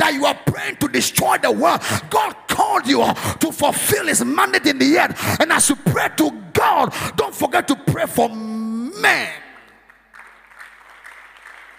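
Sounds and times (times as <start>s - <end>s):
speech: 0.2s - 9.4s
audience clapping in rhythm: 9.0s - 11.7s.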